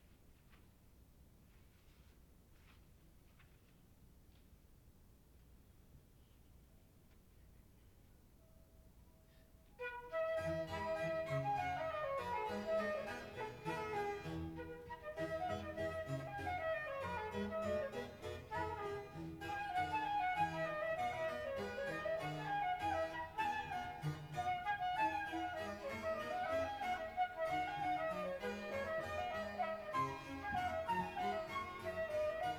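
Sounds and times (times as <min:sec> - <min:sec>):
flute sonata in E major: 0:09.6 - 0:32.5.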